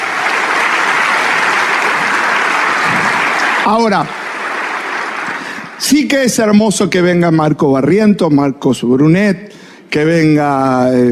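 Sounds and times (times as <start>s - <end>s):
audience applause: 0.0s - 6.0s
speech: 3.7s - 4.2s, 5.8s - 11.1s.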